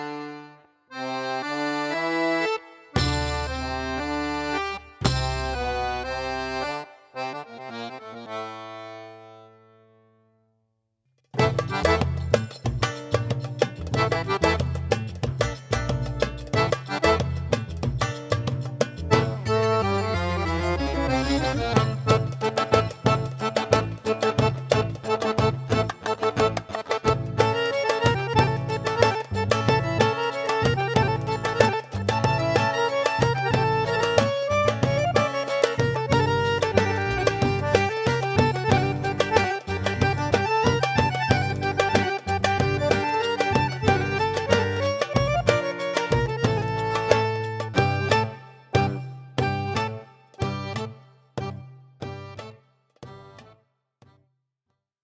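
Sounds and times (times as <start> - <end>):
oriental music: 0.9 - 9.0, 11.4 - 53.5.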